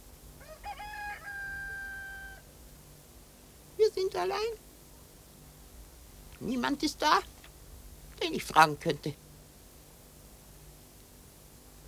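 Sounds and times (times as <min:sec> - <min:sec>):
faint low noise: 0:00.0 - 0:11.8
rooster crowing: 0:00.4 - 0:02.5
speech: 0:04.0 - 0:04.6, 0:06.4 - 0:07.3, 0:08.2 - 0:09.2.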